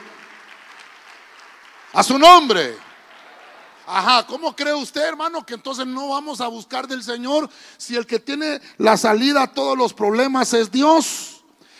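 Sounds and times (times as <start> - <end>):
audience applause: 0.0 - 3.9
speech: 1.9 - 2.9, 3.9 - 11.4.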